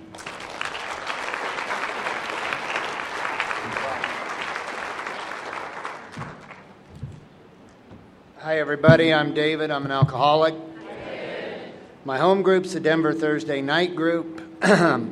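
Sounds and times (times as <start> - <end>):
audience at an Alcoholics Anonymous panel applauding: 0.0 - 6.9
speech: 8.5 - 10.6, 12.0 - 15.1.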